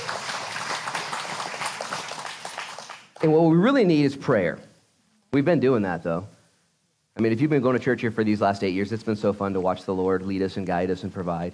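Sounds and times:
audience applause: 0.0 - 3.3
speech: 3.2 - 4.7, 5.3 - 6.4, 7.2 - 11.5.

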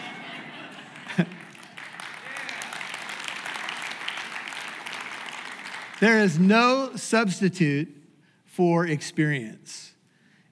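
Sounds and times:
laughter: 0.0 - 1.8
small applause from audience: 0.0 - 6.5
speech: 1.2 - 1.4, 6.0 - 8.0, 8.6 - 9.9.

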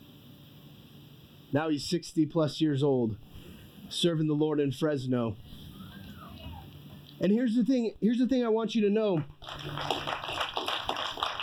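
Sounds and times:
speech: 1.5 - 5.6, 7.2 - 10.2
audience clapping: 9.2 - 11.4.

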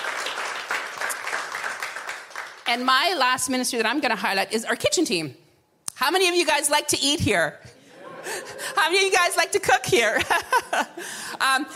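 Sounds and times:
audience applause: 0.0 - 2.7
speech: 2.7 - 5.4, 6.0 - 7.7, 8.5 - 11.7
laughter: 7.8 - 9.3, 10.0 - 11.7.

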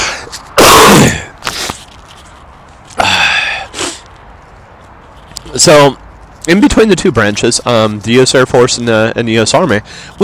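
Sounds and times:
person sneezing from allergies: 0.6 - 1.3, 3.0 - 4.0
speech: 5.6 - 10.2.

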